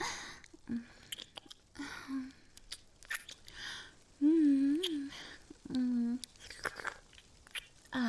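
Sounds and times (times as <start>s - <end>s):
chewing and smacking while tasting a sweet creamy treat: 0.4s - 1.8s, 2.4s - 3.6s, 4.7s - 7.9s.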